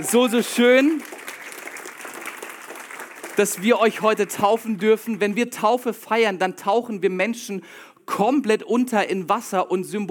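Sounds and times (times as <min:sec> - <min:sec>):
speech: 0:00.0 - 0:01.2, 0:03.4 - 0:10.0
audience applause: 0:00.0 - 0:05.0.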